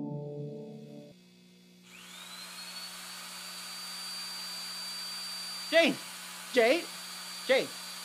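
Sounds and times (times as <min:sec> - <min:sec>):
power drill running: 0:00.7 - 0:08.0
short swooping bursts: 0:05.4 - 0:08.0.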